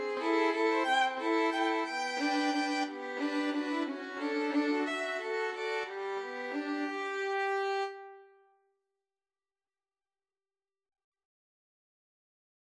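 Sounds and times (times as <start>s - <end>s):
violin duet: 0.0s - 8.2s.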